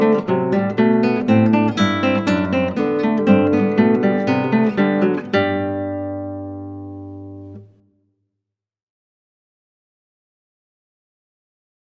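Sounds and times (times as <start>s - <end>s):
classical guitar: 0.0s - 8.0s.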